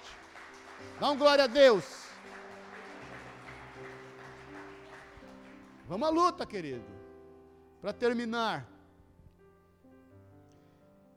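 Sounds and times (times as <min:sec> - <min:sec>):
crowd applauding: 0:00.0 - 0:06.6
speech: 0:00.9 - 0:02.0, 0:05.9 - 0:07.0, 0:07.8 - 0:08.7.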